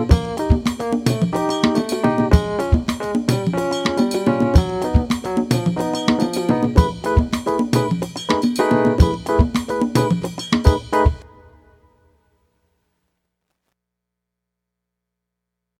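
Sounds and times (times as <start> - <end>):
Latin rhythm etude without bass: 0.0 - 11.4.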